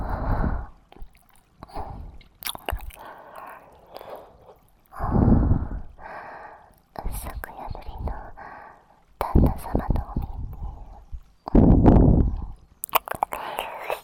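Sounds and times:
relaxed morning ear licking: 0.8 - 6.9, 9.4 - 14.0.

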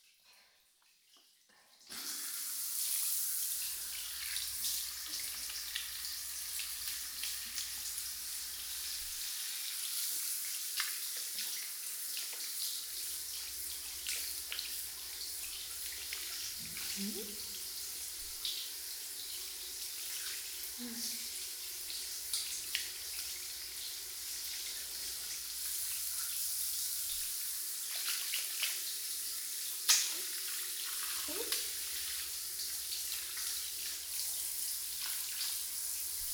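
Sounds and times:
tap water running at a washing area to rinse something sticky: 0.8 - 36.3.

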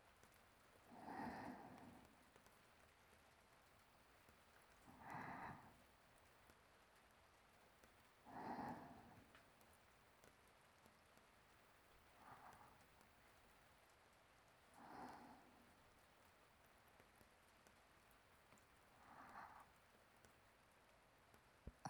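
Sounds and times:
sleeping breathing: 0.9 - 2.4, 4.8 - 5.9, 8.2 - 9.4, 12.1 - 13.0, 14.7 - 16.1, 18.9 - 20.0.

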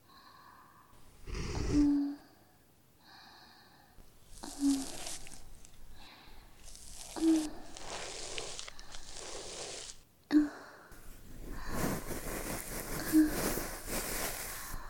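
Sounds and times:
looped breathing: 0.0 - 9.6, 10.3 - 14.8
ear cleaning: 4.0 - 10.1, 11.0 - 14.8.

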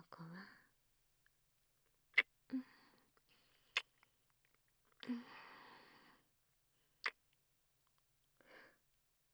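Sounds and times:
soft fluffy kissing: 2.2 - 2.6, 3.7 - 4.1, 7.0 - 7.3.

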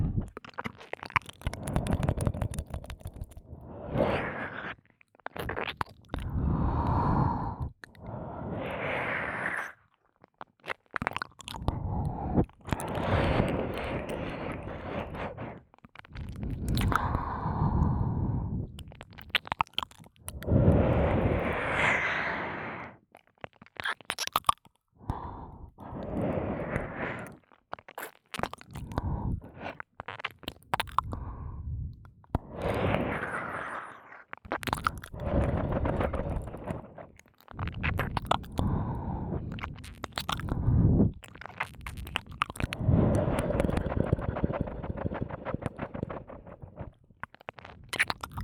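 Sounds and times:
ear licking sounds in the left ear: 0.1 - 8.2, 9.4 - 21.6, 25.8 - 48.4
suction sounds in the left ear: 1.4 - 4.8, 6.2 - 9.8, 11.6 - 15.6, 20.3 - 23.0, 25.1 - 27.4, 31.0 - 48.4.

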